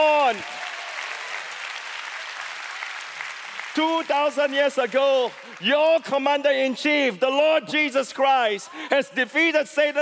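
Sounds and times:
speech: 0:00.0 - 0:00.6, 0:03.8 - 0:09.9
church audience clapping: 0:00.0 - 0:07.1.

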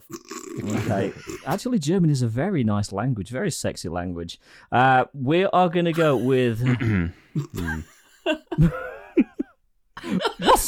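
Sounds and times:
speech: 0:00.1 - 0:08.9
laughter: 0:00.7 - 0:01.6, 0:05.9 - 0:10.6
throat clearing: 0:06.0 - 0:07.9.

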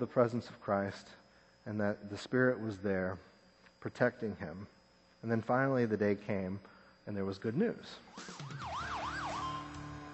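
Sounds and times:
speech: 0:00.0 - 0:08.7
fire truck siren wailing during a homecoming parade: 0:08.1 - 0:10.1.

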